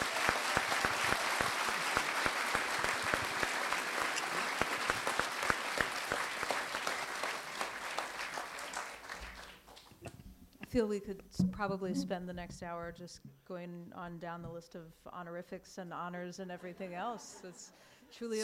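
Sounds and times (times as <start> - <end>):
audience applauding at a Harrisburg bookstore event: 0.0 - 10.0
speech: 10.8 - 18.4.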